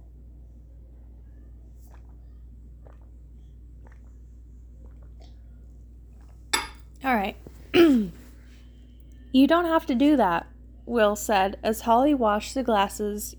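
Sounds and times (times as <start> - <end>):
sipping tea: 1.7 - 8.3
speech: 7.1 - 8.2, 9.4 - 13.3.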